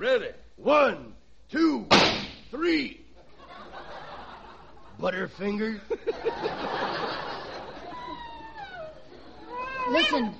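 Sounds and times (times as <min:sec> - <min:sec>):
speech: 0:00.0 - 0:03.0, 0:05.0 - 0:07.3, 0:09.9 - 0:10.3
laughter: 0:03.2 - 0:10.0
wolves howling: 0:07.9 - 0:10.2.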